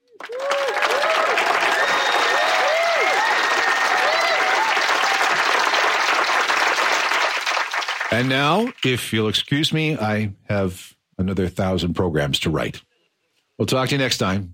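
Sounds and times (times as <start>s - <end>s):
audience applause: 0.0s - 9.0s
speech: 8.1s - 12.9s, 13.6s - 14.5s.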